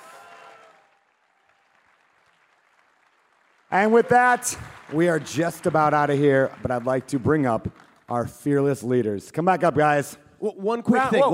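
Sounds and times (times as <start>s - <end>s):
audience applause: 0.0s - 8.2s
speech: 3.7s - 11.3s.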